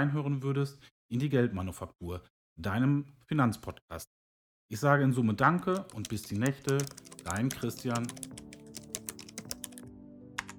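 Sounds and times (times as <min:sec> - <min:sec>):
speech: 0:00.0 - 0:08.4
faint typing on a computer keyboard: 0:05.6 - 0:09.8.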